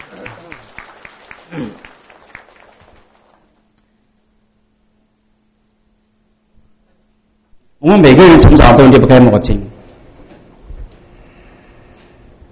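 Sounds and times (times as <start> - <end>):
audience applauding: 0.0 - 3.7
speech: 1.5 - 1.9, 7.9 - 9.7.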